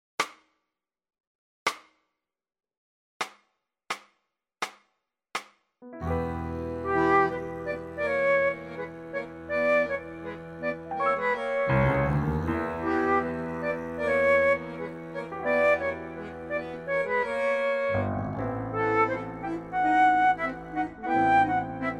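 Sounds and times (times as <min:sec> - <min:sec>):
flute: 0:06.0 - 0:21.9.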